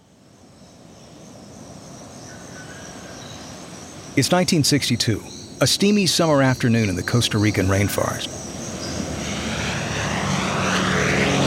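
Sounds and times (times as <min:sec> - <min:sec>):
speech: 0:04.2 - 0:08.4
American propeller bomber aircraft roaring low over jungle treetops: 0:04.2 - 0:11.4.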